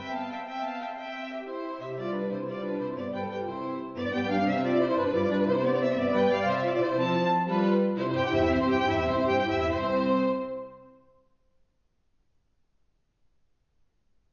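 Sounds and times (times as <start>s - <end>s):
miniature trio music in C major: 0.0s - 11.0s.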